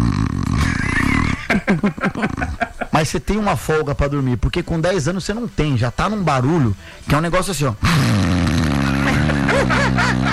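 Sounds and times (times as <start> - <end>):
person imitating snoring: 0.0 - 2.6, 7.8 - 10.3
snickering laughter: 0.5 - 3.0, 8.5 - 10.3
speech: 3.0 - 8.5, 9.6 - 10.3.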